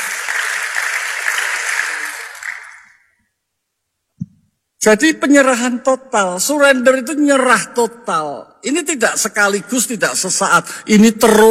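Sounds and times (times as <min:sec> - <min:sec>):
audience applause: 0:00.0 - 0:03.1
speech: 0:04.8 - 0:11.4.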